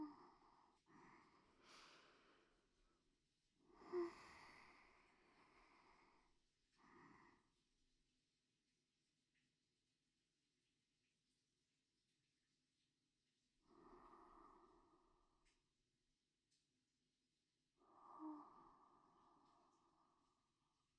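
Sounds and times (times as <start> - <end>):
sleep breathing: 0.0 - 3.0, 3.6 - 7.6, 13.6 - 15.7, 17.8 - 20.9.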